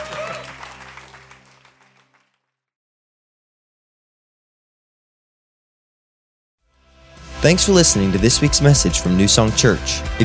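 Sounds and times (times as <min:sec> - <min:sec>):
audience clapping hands: 0:00.0 - 0:02.6
speech: 0:07.4 - 0:10.2.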